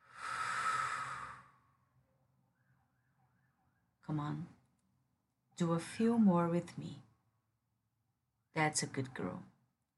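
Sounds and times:
soft breath during a guided breathing exercise: 0:00.0 - 0:01.8
speech: 0:04.1 - 0:04.6, 0:05.6 - 0:07.1, 0:08.6 - 0:09.5.

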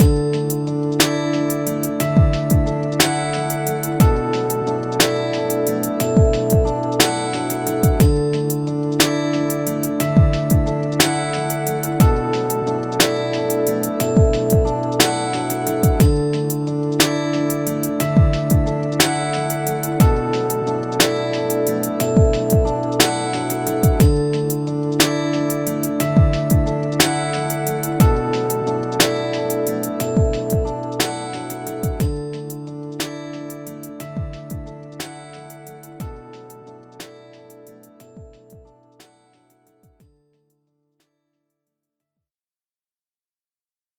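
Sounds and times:
music beat: 0:00.0 - 0:39.1.

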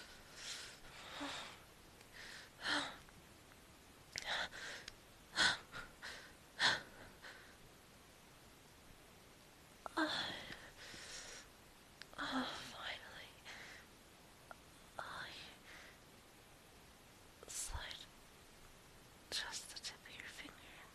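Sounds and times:
soft close breathing: 0:00.0 - 0:03.1, 0:04.1 - 0:07.7, 0:09.9 - 0:14.0, 0:15.0 - 0:16.1.

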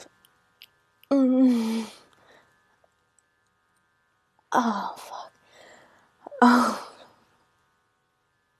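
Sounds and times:
woman moaning in orgasm: 0:01.1 - 0:02.0, 0:06.3 - 0:07.1.

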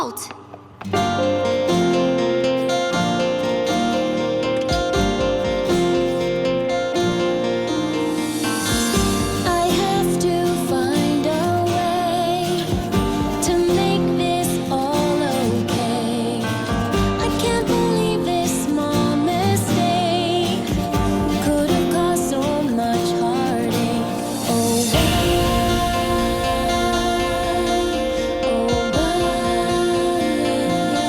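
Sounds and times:
acoustic rock cover: 0:00.2 - 0:31.0.

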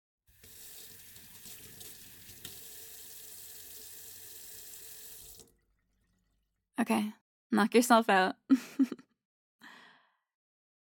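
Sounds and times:
tap running into a sink for hand washing: 0:00.4 - 0:05.5
speech: 0:06.8 - 0:09.1.

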